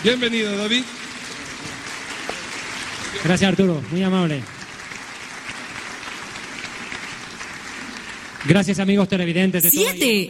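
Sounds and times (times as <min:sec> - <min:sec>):
speech: 0:00.0 - 0:01.0, 0:03.1 - 0:04.6, 0:08.4 - 0:10.2
applause welcoming a preacher at Iglesia Bautista Betania in Quito: 0:01.2 - 0:03.3, 0:04.5 - 0:08.5.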